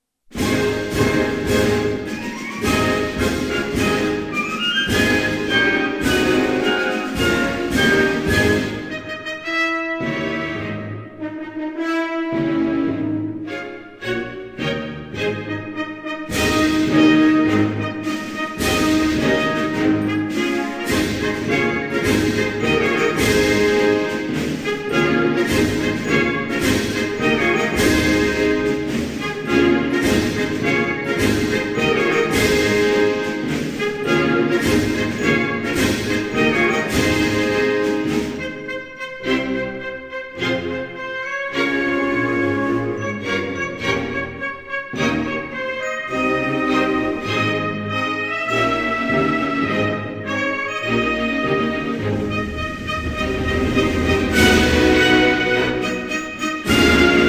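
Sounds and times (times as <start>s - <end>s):
national anthem: 0.3s - 57.2s.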